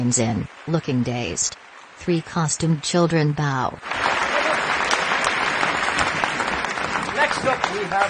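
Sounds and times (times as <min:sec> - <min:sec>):
speech: 0:00.0 - 0:04.3, 0:07.4 - 0:08.0
parents applauding in a dark school auditorium after a children's performance: 0:03.8 - 0:08.0.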